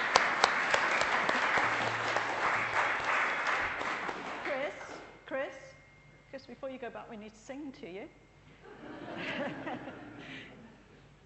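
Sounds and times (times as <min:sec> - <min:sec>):
audience clapping: 0:00.0 - 0:05.1
speech: 0:06.7 - 0:08.3, 0:09.2 - 0:10.5
laughter: 0:08.6 - 0:10.8.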